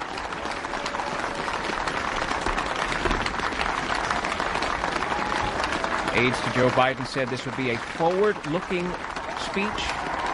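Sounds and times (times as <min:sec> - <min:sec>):
audience applauding the new president: 0:00.0 - 0:10.3
speech: 0:06.2 - 0:10.2.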